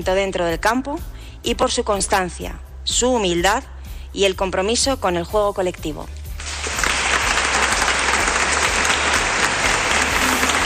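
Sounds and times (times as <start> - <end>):
speech: 0.0 - 6.2
ovation applause at an awards gala: 6.4 - 10.6.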